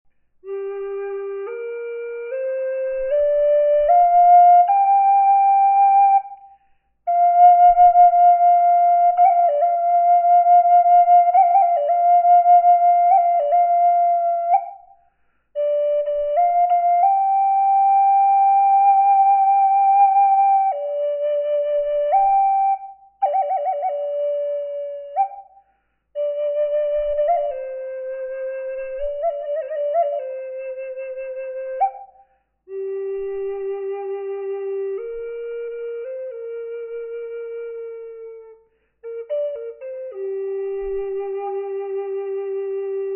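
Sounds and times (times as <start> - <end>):
flute with reverb: 0.4 - 43.1.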